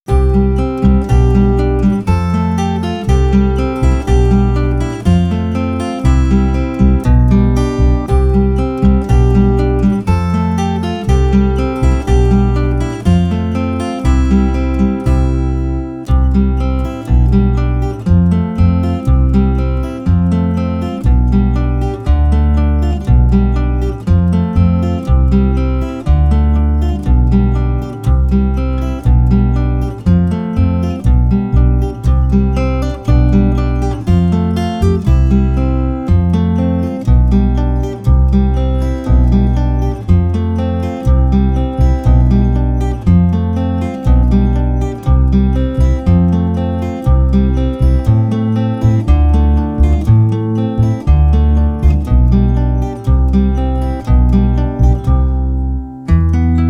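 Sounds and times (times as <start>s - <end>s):
instrumental music: 0.1s - 56.6s.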